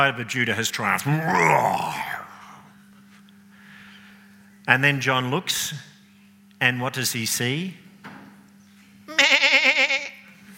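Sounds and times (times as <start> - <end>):
speech: 0.0 - 2.2, 4.7 - 5.9, 6.6 - 7.8
lamb bleating: 9.1 - 10.2.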